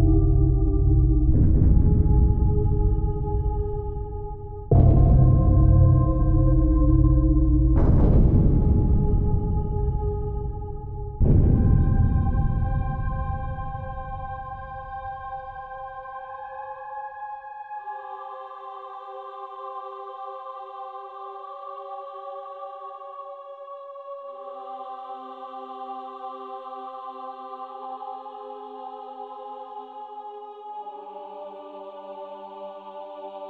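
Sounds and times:
creepy soundscape: 0:00.0 - 0:18.1.

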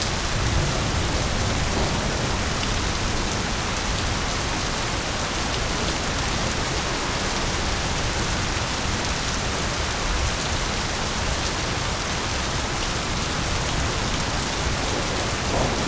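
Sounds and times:
thunder in a thunderstorm: 0:00.0 - 0:06.5, 0:13.4 - 0:15.8
heavy rain in a thunderstorm: 0:00.0 - 0:15.8.

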